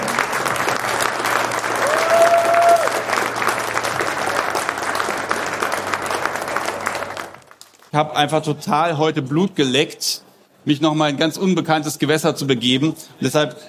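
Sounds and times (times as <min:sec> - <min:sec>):
audience applause in a hall: 0:00.0 - 0:07.9
speech: 0:08.0 - 0:13.6.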